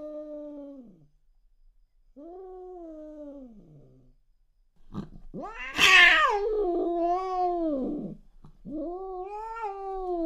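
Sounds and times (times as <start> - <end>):
cat hissing angrily in a fight: 4.9 - 10.0
cat meowing angrily in a fight: 5.4 - 8.0, 8.7 - 10.1.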